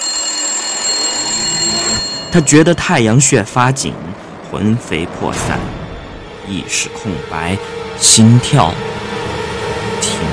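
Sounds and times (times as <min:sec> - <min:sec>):
telephone ringing: 0:00.0 - 0:02.9
speech: 0:02.3 - 0:05.8, 0:06.5 - 0:08.9, 0:10.0 - 0:10.3.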